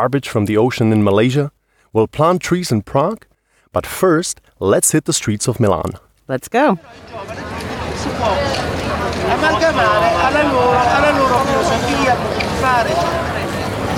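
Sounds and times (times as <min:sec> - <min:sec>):
speech: 0:00.0 - 0:13.3
busy city street bustle in Milan: 0:06.8 - 0:13.9.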